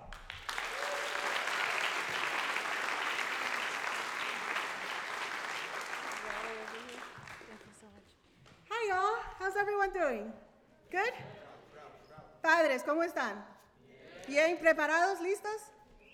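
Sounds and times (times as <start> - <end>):
audience applause: 0.0 - 7.8
speech: 9.9 - 11.4, 12.4 - 13.5, 14.3 - 15.7.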